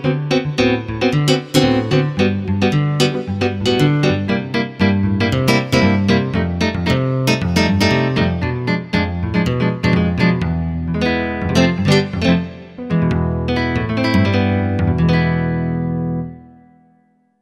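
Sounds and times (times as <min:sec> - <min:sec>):
Roland V-Synth nylon patch: 0:00.0 - 0:15.4.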